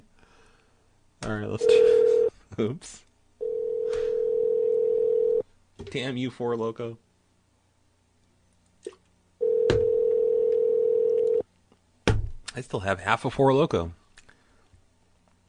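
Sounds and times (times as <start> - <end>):
speech: 1.2 - 3.1, 5.9 - 7.0, 12.6 - 14.0
telephone dial tone: 3.4 - 5.4, 9.4 - 11.4.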